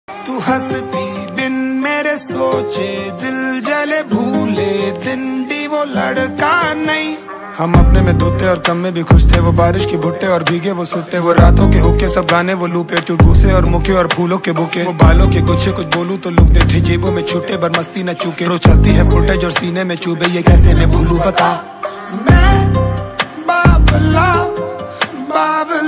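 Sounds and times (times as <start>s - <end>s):
Hindi rap ringtone: 0.2s - 24.6s.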